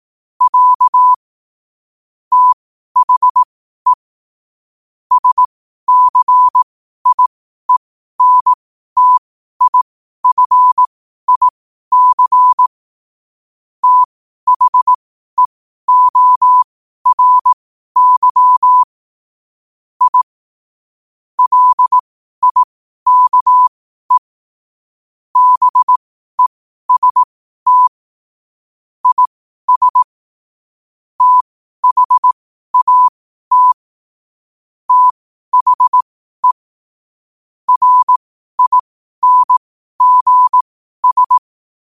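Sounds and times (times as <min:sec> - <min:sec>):
morse code at 5 wpm: 0:00.4 - 0:01.2, 0:02.3 - 0:03.5, 0:05.1 - 0:12.7, 0:13.8 - 0:18.9, 0:20.0 - 0:20.3, 0:21.4 - 0:24.3, 0:25.4 - 0:27.9, 0:29.0 - 0:30.1, 0:31.2 - 0:33.8, 0:34.9 - 0:36.6, 0:37.7 - 0:41.5.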